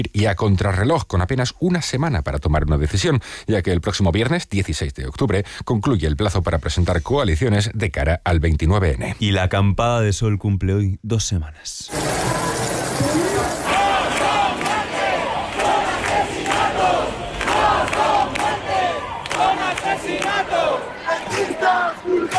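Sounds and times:
speech: 0:00.0 - 0:12.4
angry protest crowd shouting and chanting: 0:11.9 - 0:22.3.

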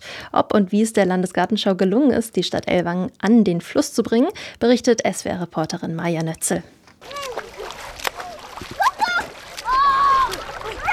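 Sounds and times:
speech: 0:00.3 - 0:07.2
children splashing and playing in the Jagst river: 0:07.0 - 0:10.9.

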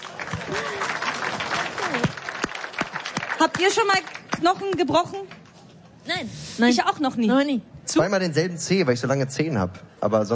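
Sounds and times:
applause: 0:00.0 - 0:05.4
speech: 0:03.4 - 0:05.4, 0:06.0 - 0:10.3.

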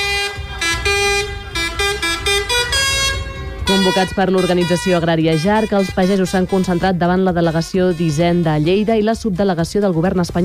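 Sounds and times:
tractor engine drone: 0:00.0 - 0:06.8
tractor horns honking at a farmers' protest: 0:00.0 - 0:09.2
speech: 0:03.8 - 0:10.4.

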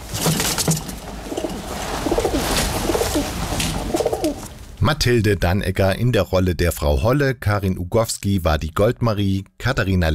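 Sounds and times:
pigeons cooing: 0:01.4 - 0:04.5
speech: 0:04.8 - 0:10.1.

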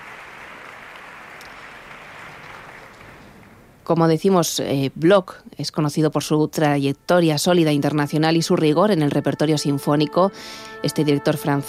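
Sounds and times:
audience applause for the concertmaster: 0:00.0 - 0:03.6
speech: 0:03.9 - 0:11.6.

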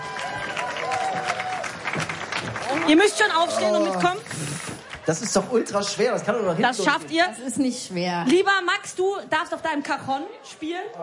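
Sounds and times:
audience clapping before a live song performance: 0:00.0 - 0:05.6
speech: 0:02.9 - 0:04.5, 0:05.1 - 0:11.0.

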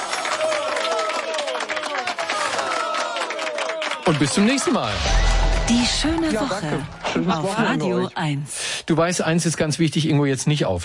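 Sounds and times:
cheering voices and whoops: 0:00.0 - 0:04.1
crowd applauding loudly: 0:00.0 - 0:07.4
speech: 0:04.1 - 0:10.8.

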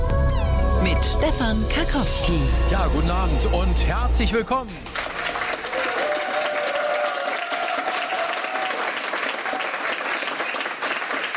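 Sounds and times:
speech: 0:00.8 - 0:05.0
studio audience applause: 0:04.8 - 0:11.3.

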